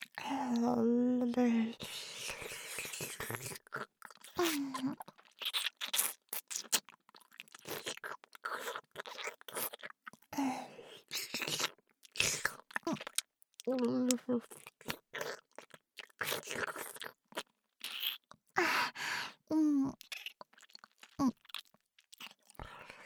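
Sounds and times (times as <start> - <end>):
oral sex sounds: 0.0 - 6.9, 8.5 - 15.5, 17.8 - 21.6.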